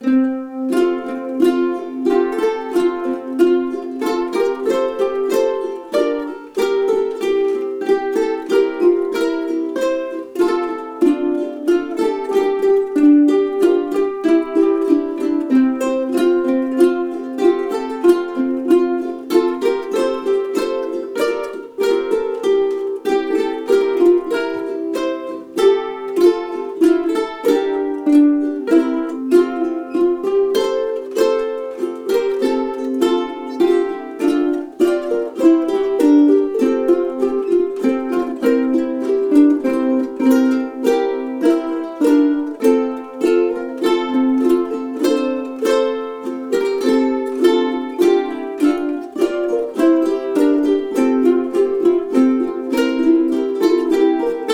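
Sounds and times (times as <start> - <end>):
ukulele playing a Christmas carol: 0.0 - 54.5.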